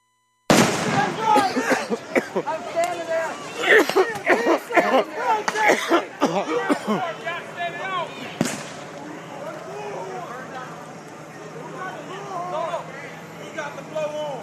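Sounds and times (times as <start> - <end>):
rubber bullets fired at a crowd: 0.5 - 1.2, 8.4 - 8.9
loud agitated crowd shouting: 0.5 - 14.4
laughter: 1.0 - 8.2.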